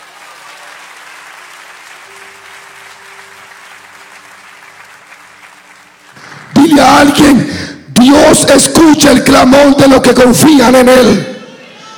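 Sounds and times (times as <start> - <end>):
audience applause: 0.0 - 7.1
speech: 6.6 - 11.3.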